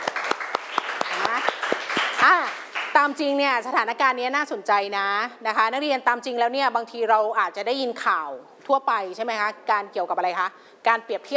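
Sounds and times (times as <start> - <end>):
classroom applause for a classmate: 0.0 - 3.0
speech: 2.2 - 11.3.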